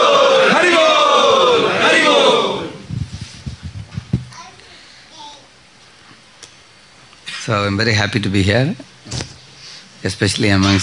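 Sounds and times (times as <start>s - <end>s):
crowd of devotees chanting in welcome: 0.0s - 2.9s
speech: 7.5s - 9.2s, 10.0s - 10.8s.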